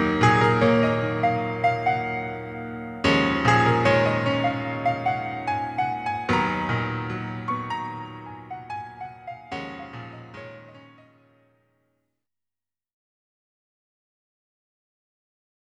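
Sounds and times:
piano: 0.0s - 11.9s.

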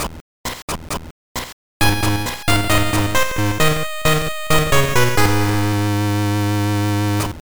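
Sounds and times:
level completed jingle: 1.8s - 7.2s.

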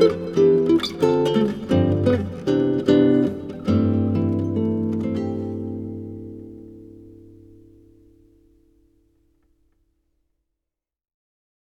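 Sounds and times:
guitar solo: 0.0s - 8.5s.

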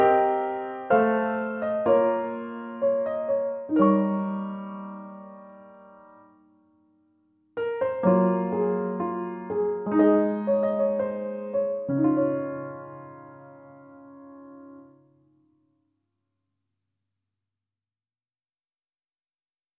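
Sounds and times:
solo piano: 0.0s - 15.4s.

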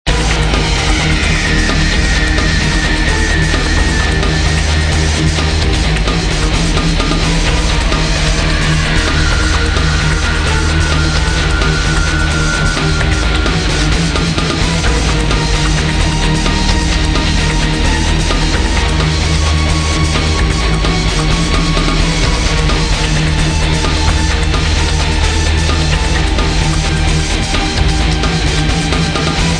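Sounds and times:
suspenseful cave ambience: 0.0s - 29.5s.

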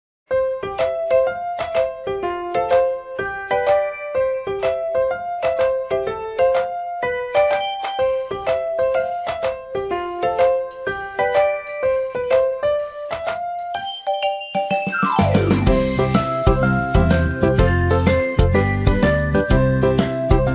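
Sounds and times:
instrumental music: 0.3s - 20.5s.

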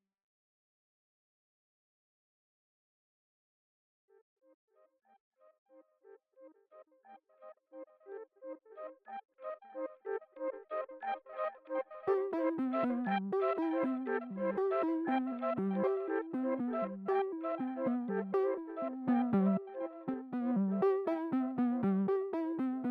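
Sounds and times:
synths: 9.7s - 22.8s.

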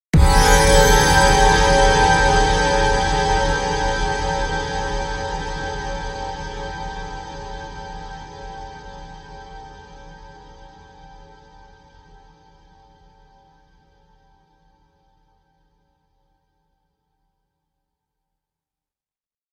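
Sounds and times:
jump scare sting: 0.2s - 5.5s.

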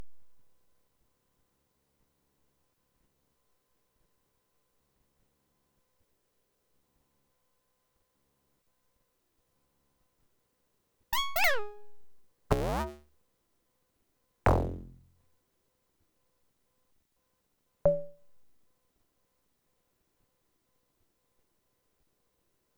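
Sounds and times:
button click: 11.2s - 13.0s, 14.5s - 15.0s.

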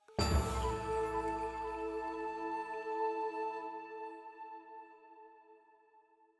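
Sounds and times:
jingle: 0.0s - 3.3s
flute in A: 0.0s - 6.0s.

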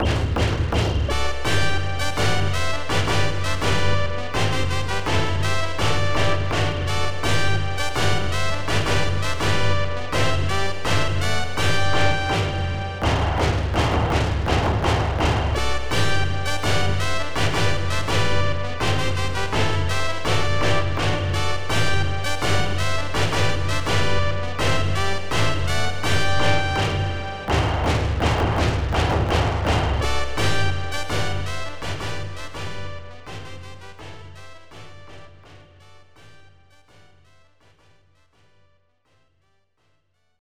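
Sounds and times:
march music with hits: 0.0s - 36.3s.

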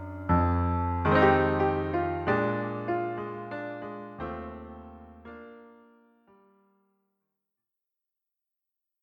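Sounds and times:
jazz music: 0.0s - 3.7s.

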